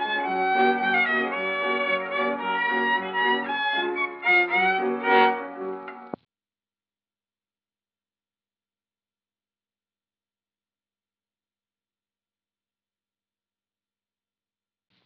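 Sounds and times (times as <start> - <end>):
music: 0.0 - 6.2.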